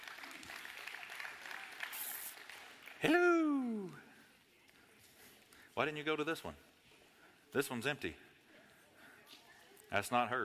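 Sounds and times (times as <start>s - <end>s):
audience round of applause: 0.0s - 4.0s
speech: 3.0s - 3.2s, 5.8s - 6.7s, 7.5s - 8.3s, 9.9s - 10.4s.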